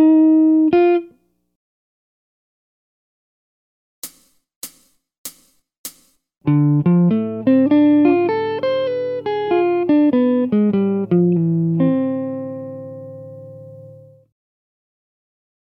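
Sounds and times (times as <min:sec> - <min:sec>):
jazz guitar: 0:00.0 - 0:01.2, 0:06.5 - 0:14.2.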